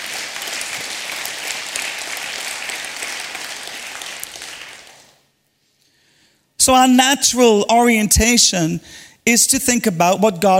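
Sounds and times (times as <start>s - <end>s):
audience applause: 0.0s - 5.2s
speech: 6.6s - 10.5s.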